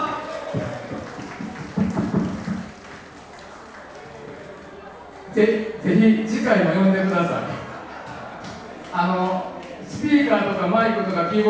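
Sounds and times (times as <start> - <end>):
audience applause: 0.0 - 4.8
speech: 5.4 - 7.5, 10.0 - 11.4
laughter: 7.3 - 8.9.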